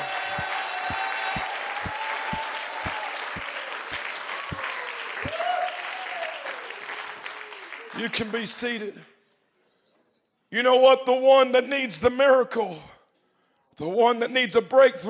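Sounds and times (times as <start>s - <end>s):
people clapping hands: 0.0s - 9.1s
speech: 8.0s - 9.2s, 10.5s - 12.9s, 13.8s - 15.0s.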